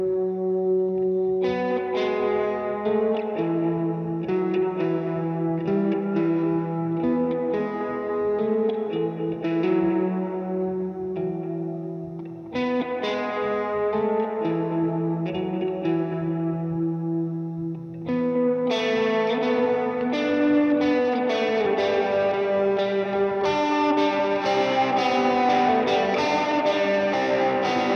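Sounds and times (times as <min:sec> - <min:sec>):
guitar recorded with SM57 microphone: 0:00.0 - 0:27.9.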